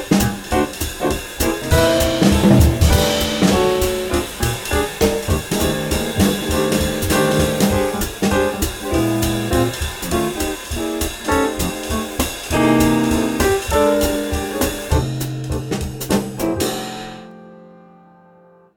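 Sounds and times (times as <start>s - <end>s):
200bpm swing blues in F: 0.0s - 17.3s.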